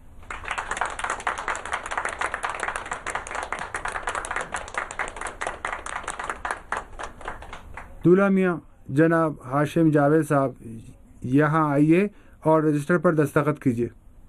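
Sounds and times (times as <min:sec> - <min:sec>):
people clapping for the bride and groom: 0:00.0 - 0:08.2
speech: 0:08.0 - 0:14.0.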